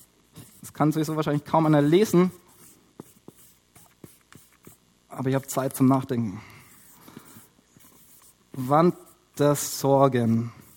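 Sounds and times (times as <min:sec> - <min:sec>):
pen writing by hand with scratchy strokes and taps: 0:00.0 - 0:00.8, 0:02.4 - 0:04.8, 0:06.6 - 0:09.2, 0:10.2 - 0:10.7
speech: 0:00.8 - 0:02.4, 0:05.2 - 0:06.5, 0:08.6 - 0:10.6.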